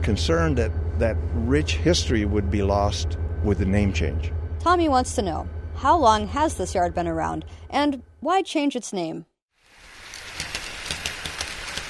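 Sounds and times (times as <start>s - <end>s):
model train running around its track at a house in Portage: 0.0s - 7.3s, 10.1s - 11.8s
speech: 0.0s - 9.3s.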